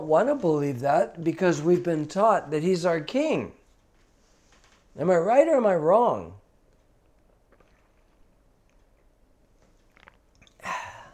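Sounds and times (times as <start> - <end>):
speech: 0.0 - 3.6, 5.0 - 6.4
person drinking water: 6.6 - 11.1
breathy gulp and exhale: 7.2 - 11.1.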